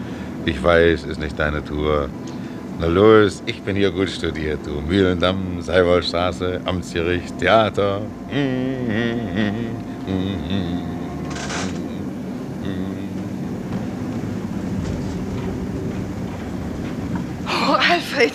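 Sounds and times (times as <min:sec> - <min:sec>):
tram approaching late at night: 0:00.0 - 0:18.3
speech: 0:00.4 - 0:11.0
tram electric motor whining: 0:06.7 - 0:16.1.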